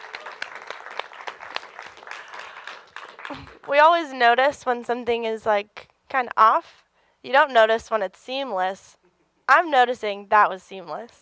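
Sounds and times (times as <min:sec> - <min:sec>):
audience clapping: 0:00.0 - 0:03.9
speech: 0:03.3 - 0:11.2.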